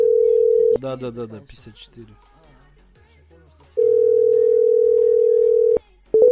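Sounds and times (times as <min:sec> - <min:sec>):
unanswered phone call ringing tone: 0:00.0 - 0:00.8, 0:03.8 - 0:06.3
speech: 0:00.8 - 0:02.4
quick phone beeps: 0:05.6 - 0:06.3.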